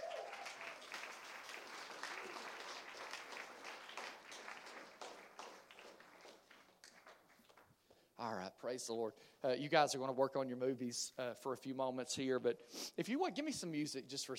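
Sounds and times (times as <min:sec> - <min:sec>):
audience applauding with hand claps: 0:00.0 - 0:08.0
speech: 0:08.2 - 0:14.3.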